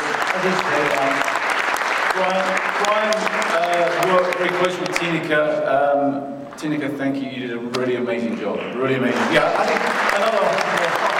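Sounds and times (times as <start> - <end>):
audience applause: 0.0 - 5.3, 8.6 - 11.1
speech: 0.4 - 1.3, 2.2 - 11.1.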